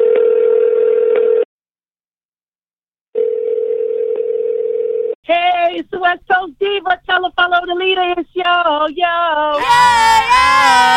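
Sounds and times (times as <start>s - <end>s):
telephone ringback tone: 0.0s - 1.5s, 3.2s - 5.2s
speech: 6.0s - 10.9s.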